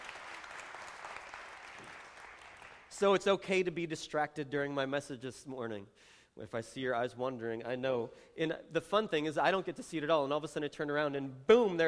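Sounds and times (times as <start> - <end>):
audience applause: 0.0 - 2.9
speech: 3.0 - 11.8.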